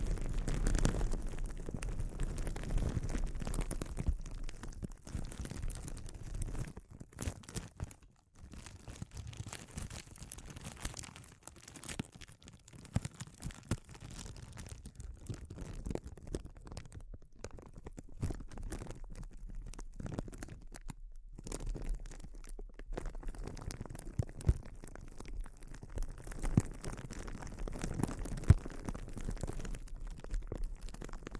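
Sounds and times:
soft crinkling: 0.0 - 31.3.

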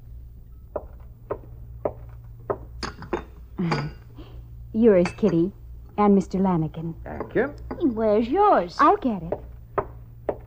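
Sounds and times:
cups and dishes clinking: 2.5 - 5.6, 7.0 - 8.0
speech: 3.6 - 4.0, 4.8 - 9.5.

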